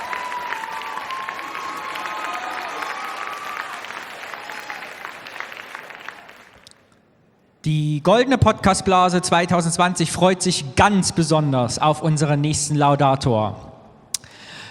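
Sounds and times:
audience applause: 0:00.0 - 0:07.0
speech: 0:07.6 - 0:13.7.

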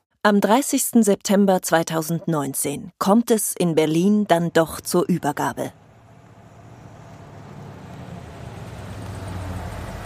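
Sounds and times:
speech: 0:00.2 - 0:05.8
van driving up and pulling in at a museum research laboratory: 0:05.3 - 0:10.0.

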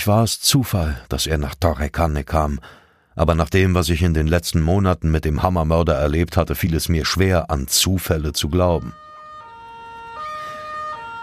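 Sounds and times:
speech: 0:00.0 - 0:09.0
police siren: 0:08.8 - 0:11.2.

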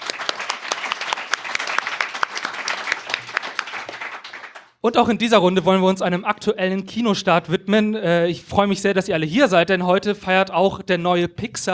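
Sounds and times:
audience applause: 0:00.0 - 0:04.8
speech: 0:04.8 - 0:11.7.

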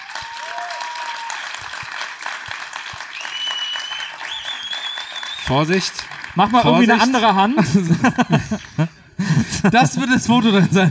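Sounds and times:
whistles and cheers: 0:00.0 - 0:01.9, 0:02.9 - 0:06.0
audience applause: 0:00.0 - 0:08.9
speech: 0:05.5 - 0:10.8
laughter: 0:06.5 - 0:10.8.

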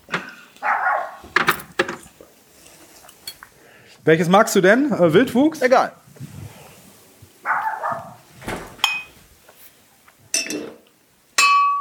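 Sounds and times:
neighbours' dogs barking at a distance: 0:00.2 - 0:01.5, 0:07.4 - 0:08.4
speech: 0:04.0 - 0:06.0.

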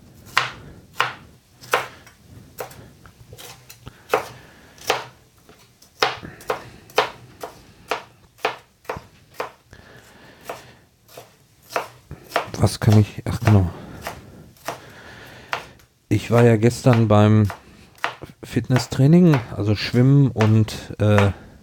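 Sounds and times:
knife dicing vegetables on a cutting board: 0:00.3 - 0:02.0, 0:03.4 - 0:05.2, 0:06.0 - 0:09.6, 0:10.4 - 0:14.9, 0:15.5 - 0:15.7, 0:16.3 - 0:21.6
speech: 0:12.6 - 0:13.8, 0:16.2 - 0:17.6, 0:18.6 - 0:21.4.

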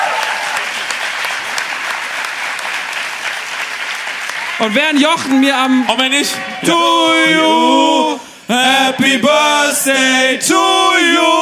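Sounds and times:
audience applause: 0:00.0 - 0:06.7
speech: 0:04.6 - 0:11.4.

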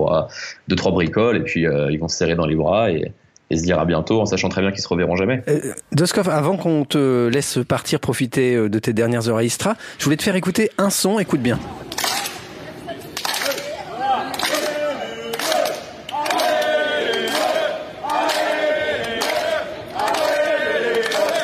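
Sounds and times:
speech: 0:00.2 - 0:12.0
crowd rhythmic clapping: 0:11.8 - 0:21.4.

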